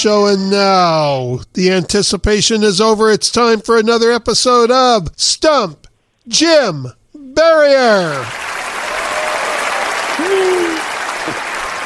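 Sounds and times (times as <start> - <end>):
speech: 0.0 - 8.5
long audience applause: 8.1 - 11.8.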